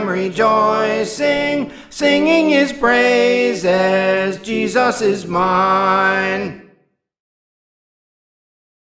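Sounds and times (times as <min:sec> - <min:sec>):
soprano singing: 0:00.0 - 0:06.7.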